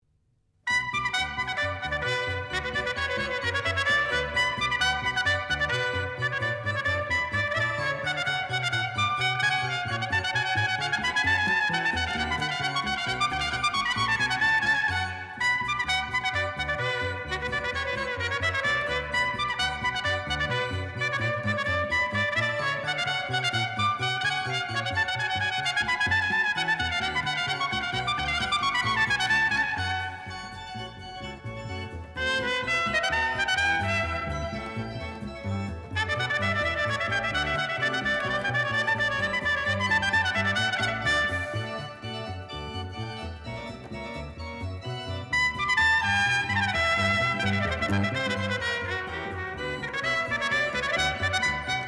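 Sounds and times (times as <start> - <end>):
trumpet: 0.7 - 51.8.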